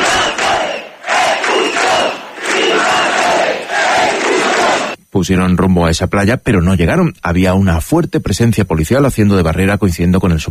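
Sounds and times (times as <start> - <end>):
large crowd of demonstrators cheering and chanting: 0.0 - 5.0
speech: 5.2 - 10.5.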